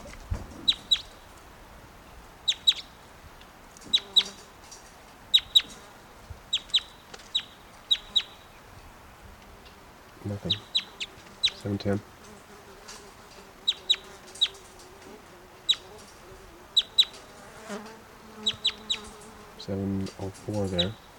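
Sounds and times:
bird clucking at auction: 0.0s - 1.3s, 2.4s - 3.0s, 3.8s - 4.5s, 6.5s - 8.4s, 9.6s - 12.4s, 13.0s - 17.8s, 18.4s - 19.4s
brief rumble of voices: 10.1s - 10.6s
speech: 11.7s - 12.1s, 20.2s - 21.1s.

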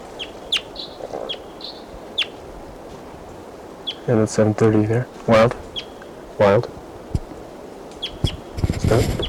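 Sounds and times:
wild bird calling: 0.0s - 2.7s, 3.3s - 9.2s
speech: 4.1s - 5.6s, 6.4s - 6.8s, 8.9s - 9.2s.

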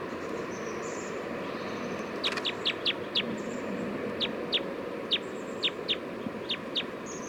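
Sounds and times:
bird calls from a field recording: 0.2s - 7.2s.

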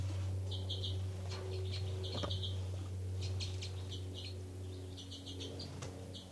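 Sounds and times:
steady low hum: 0.0s - 6.3s
soft high bird calls: 0.5s - 6.3s.

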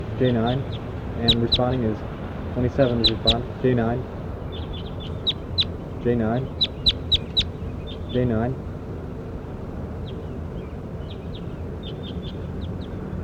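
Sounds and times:
low rumble: 0.0s - 13.2s
bird giving sharp high chirps and peeps: 0.1s - 2.0s, 2.6s - 3.6s, 4.3s - 8.4s, 10.0s - 13.2s
speech: 0.2s - 4.2s, 6.0s - 6.6s, 8.1s - 8.6s.

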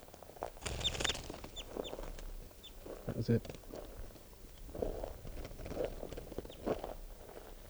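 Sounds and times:
fluttering rustling noise: 0.5s - 7.2s
captive bird calling: 0.7s - 6.7s
speech: 3.3s - 3.7s.

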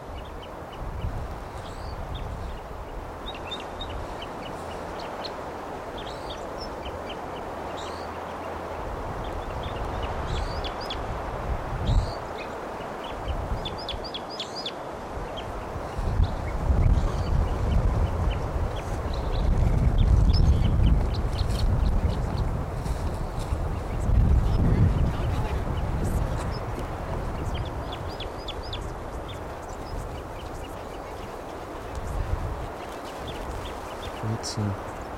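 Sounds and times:
wild bird calls: 0.0s - 11.2s, 11.8s - 35.1s
speech: 34.6s - 34.8s.

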